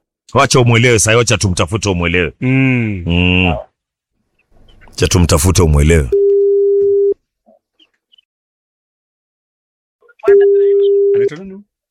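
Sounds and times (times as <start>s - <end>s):
speech: 0.3s - 3.7s, 5.0s - 6.2s, 11.2s - 11.7s
telephone ringing tones as a radio station calls a listener: 6.1s - 7.2s, 10.2s - 11.4s.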